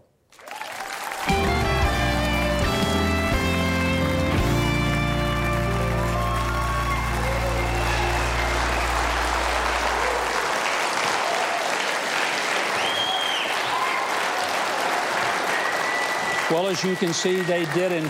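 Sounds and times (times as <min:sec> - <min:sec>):
audience applause welcoming a guest: 0:00.3 - 0:18.0
musical tones: 0:01.3 - 0:10.3
speech: 0:16.6 - 0:18.0.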